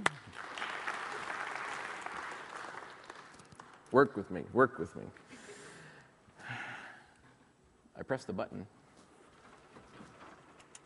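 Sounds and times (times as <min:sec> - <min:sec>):
applause: 0:00.0 - 0:04.2
speech: 0:03.9 - 0:05.4, 0:08.0 - 0:08.8.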